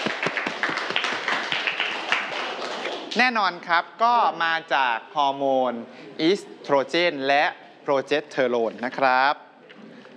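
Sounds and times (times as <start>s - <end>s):
classroom clapping for a student: 0.0s - 3.2s
speech: 3.1s - 9.4s.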